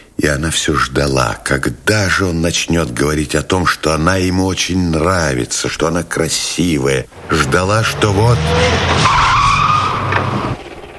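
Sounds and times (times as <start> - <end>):
speech: 0.3 - 9.4
large black car engine droning: 7.1 - 10.9
large black car tires squealing: 7.2 - 10.9.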